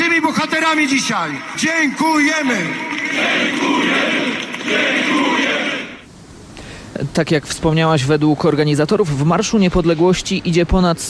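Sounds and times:
crowd applauding and cheering at a march: 0:00.0 - 0:06.1
speech: 0:00.3 - 0:05.6, 0:07.0 - 0:11.0.

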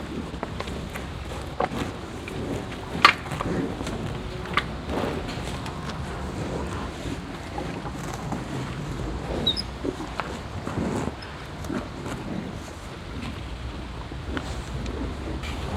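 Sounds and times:
cows mouth and breathing sounds on a meadow: 0:00.0 - 0:15.7.

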